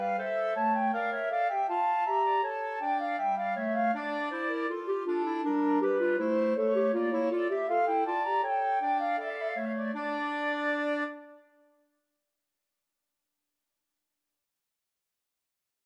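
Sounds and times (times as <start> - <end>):
flute playing a bourree: 0.0 - 11.6
clarinet playing a bourree: 0.0 - 11.7.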